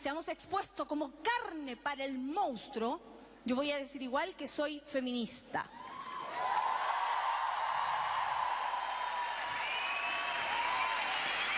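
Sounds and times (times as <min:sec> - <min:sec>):
speech: 0:00.0 - 0:06.6
faint whoops or cheers: 0:05.7 - 0:11.5
audience applause: 0:06.2 - 0:11.5.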